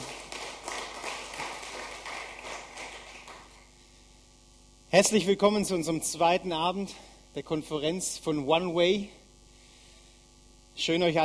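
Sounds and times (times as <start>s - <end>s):
audience applause: 0.0s - 3.7s
speech: 4.9s - 9.2s, 10.8s - 11.2s.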